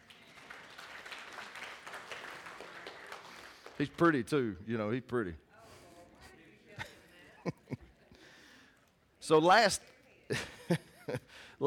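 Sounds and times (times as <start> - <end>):
audience applause: 0.0 - 3.9
speech: 3.8 - 5.4, 9.3 - 11.6
laughter: 6.8 - 8.2, 10.3 - 11.4.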